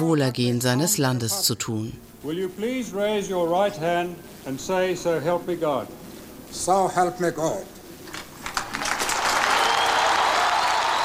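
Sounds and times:
speech: 0.0s - 7.8s
applause after the oath of office: 8.1s - 11.0s.

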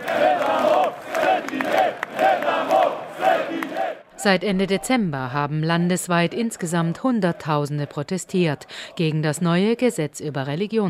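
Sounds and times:
crowd of believers chanting slogans: 0.0s - 9.3s
speech: 4.2s - 10.8s.

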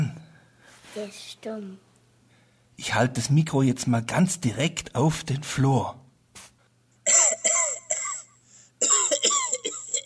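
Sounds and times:
speech: 1.0s - 1.9s, 2.8s - 6.0s
harsh raspy coughing: 7.0s - 10.0s.

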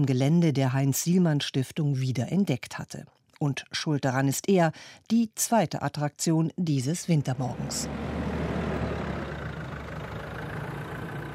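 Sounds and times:
speech: 0.0s - 8.2s
Bundeswehr Büffel armoured recovery tank engine driving on sandy ground: 7.2s - 11.3s.

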